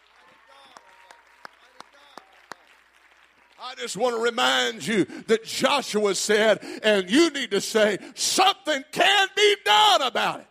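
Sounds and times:
group clapping hands in a steady beat: 0.0 - 4.0
speech: 3.6 - 10.4.

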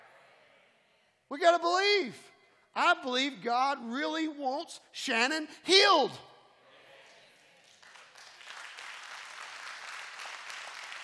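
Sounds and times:
speech: 1.3 - 6.3
church audience clapping: 7.6 - 11.0.

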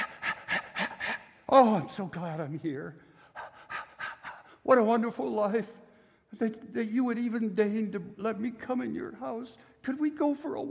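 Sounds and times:
person imitating a panting dog: 0.0 - 1.4, 3.3 - 4.6
speech: 1.5 - 3.1, 4.7 - 10.6.

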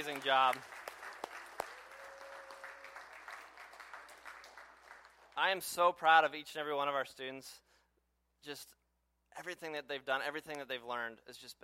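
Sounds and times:
speech: 0.0 - 0.8, 5.4 - 7.6, 8.4 - 8.8, 9.4 - 11.6
crowd applauding: 0.0 - 5.4.

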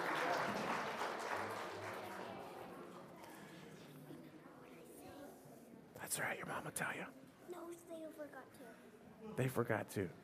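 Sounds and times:
crowd applause: 0.0 - 3.1
speech: 6.1 - 10.2.

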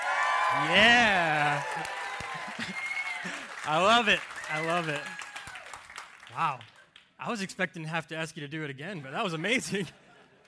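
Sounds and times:
audience clapping: 0.0 - 7.2
speech: 0.5 - 2.0, 3.7 - 5.2, 6.3 - 10.0.

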